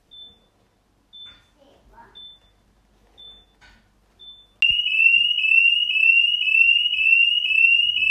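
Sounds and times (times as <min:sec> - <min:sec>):
Minut smart home sensor siren: 0:04.6 - 0:08.0.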